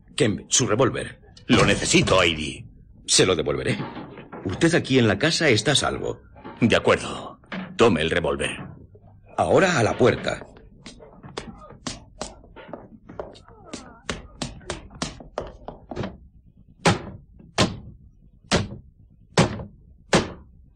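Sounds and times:
speech: 0:00.2 - 0:08.7, 0:09.4 - 0:10.5
axe blows striking a bedroom window: 0:18.5 - 0:18.8, 0:19.4 - 0:20.4.

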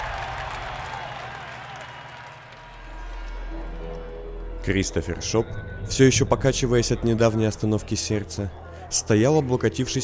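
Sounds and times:
crowd cheering and applauding: 0:00.0 - 0:04.2
speech: 0:04.7 - 0:10.0.

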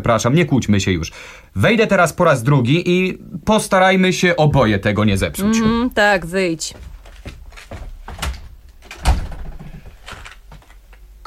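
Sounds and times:
speech: 0:00.0 - 0:07.4
door shut with a solid thump: 0:08.2 - 0:10.0.

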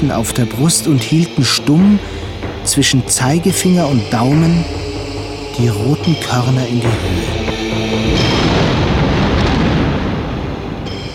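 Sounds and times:
speech: 0:00.0 - 0:04.9, 0:05.6 - 0:08.0
thunder booming in a winter storm: 0:06.9 - 0:11.1.

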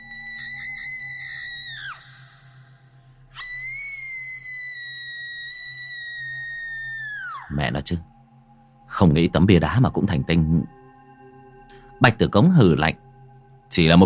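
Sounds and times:
shrill miserable scream: 0:00.0 - 0:07.5
speech: 0:07.5 - 0:08.1, 0:09.0 - 0:10.8, 0:12.0 - 0:13.0, 0:13.7 - 0:14.0.

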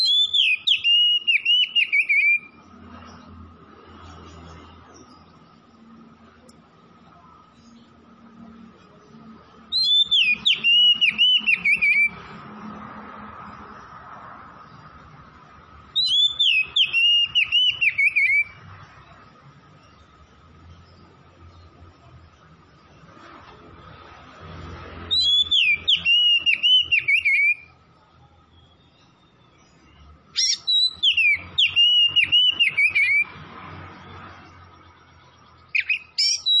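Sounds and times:
Oriental magpie-robin song: 0:00.0 - 0:03.3, 0:09.1 - 0:12.3, 0:15.8 - 0:21.7, 0:25.0 - 0:33.4, 0:35.4 - 0:36.5.

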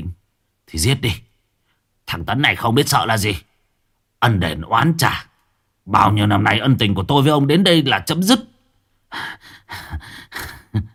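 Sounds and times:
speech: 0:00.7 - 0:01.3, 0:02.1 - 0:03.5, 0:04.2 - 0:08.5, 0:09.1 - 0:10.9
man panting heavily through gritted teeth: 0:09.1 - 0:10.9.

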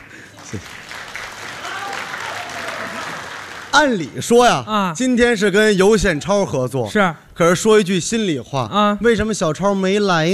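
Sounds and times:
sparse audience applause at a xiangsheng crosstalk performance: 0:00.0 - 0:04.0
speech: 0:00.4 - 0:00.8, 0:03.7 - 0:10.3.

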